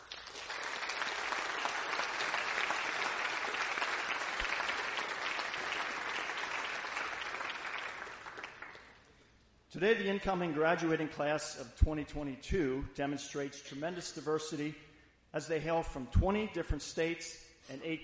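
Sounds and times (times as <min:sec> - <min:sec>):
audience applause: 0:00.0 - 0:09.0
speech: 0:09.7 - 0:18.0.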